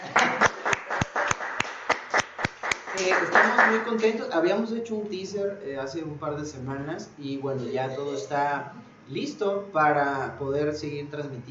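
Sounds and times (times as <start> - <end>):
people clapping: 0.0 - 4.2
speech: 3.0 - 11.4.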